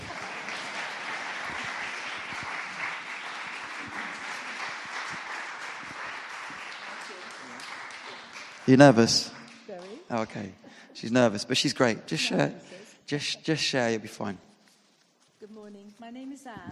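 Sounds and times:
audience clapping: 0.0s - 12.2s
speech: 8.7s - 9.3s, 10.2s - 14.5s, 16.2s - 16.7s.

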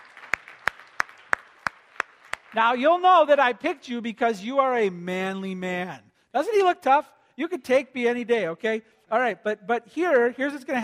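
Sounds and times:
hand claps: 0.0s - 2.6s
speech: 2.5s - 10.8s.

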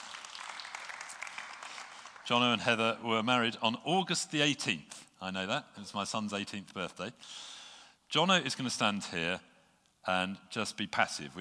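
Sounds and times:
audience applause: 0.0s - 2.5s
speech: 2.3s - 11.3s.

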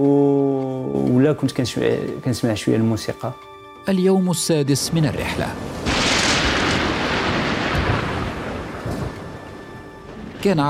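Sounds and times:
speech: 0.0s - 0.3s, 1.3s - 6.0s, 10.4s - 10.6s
thunderstorm at sea: 4.9s - 10.6s.

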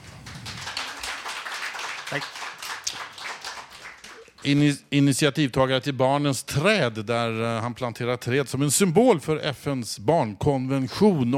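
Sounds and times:
audience applause: 0.0s - 4.6s
speech: 2.1s - 2.4s, 4.4s - 11.3s.

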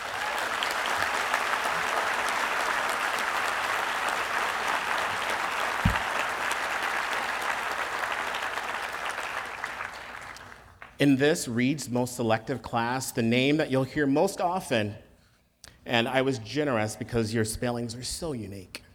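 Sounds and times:
audience applause welcoming new students at Reed College: 0.0s - 10.7s
speech: 11.0s - 15.0s, 15.9s - 18.8s.

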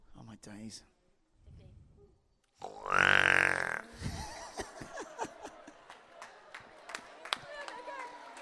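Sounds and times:
person imitating a pig squealing grunt: 2.6s - 4.1s
laughter: 3.9s - 8.4s.

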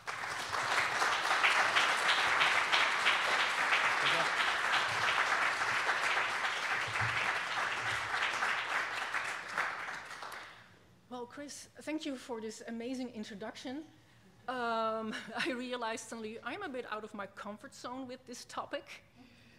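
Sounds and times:
audience applause welcoming a lecturer: 0.0s - 10.6s
speech: 11.5s - 19.1s.

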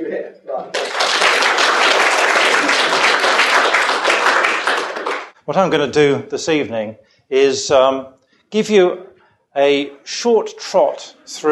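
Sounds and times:
audience applause for the speaker: 0.7s - 5.4s
speech: 5.5s - 11.5s.

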